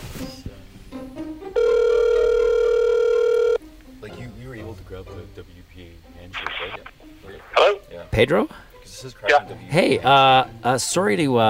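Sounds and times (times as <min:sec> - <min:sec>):
short electronic beeps and tones of an outgoing phone call: 0:01.6 - 0:03.6
speech: 0:08.2 - 0:11.4.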